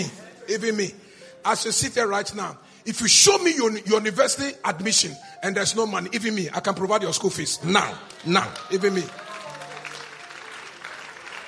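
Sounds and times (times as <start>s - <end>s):
speech: 0.0s - 9.3s
audience clapping: 7.7s - 11.4s.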